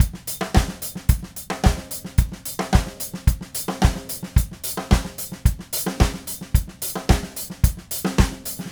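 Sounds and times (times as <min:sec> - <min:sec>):
DW Red Maple drum kit groove: 0:00.0 - 0:08.7.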